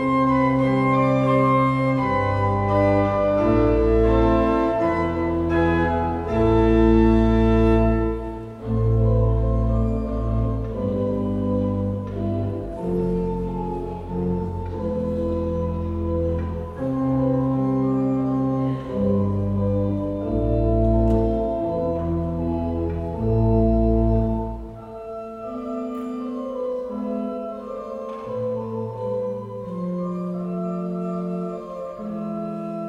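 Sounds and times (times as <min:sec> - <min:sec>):
organ chaconne in A minor with pedal: 0:00.0 - 0:32.8.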